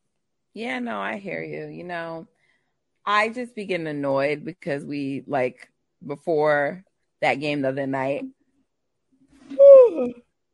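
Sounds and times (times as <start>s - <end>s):
speech: 0.6s - 2.4s, 3.1s - 8.4s, 9.5s - 10.2s
person yawning: 9.5s - 10.2s.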